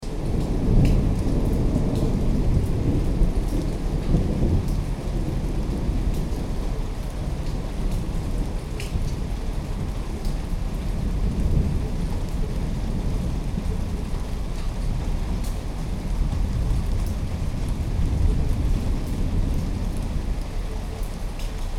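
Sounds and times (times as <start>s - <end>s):
thunder: 0.1s - 21.6s.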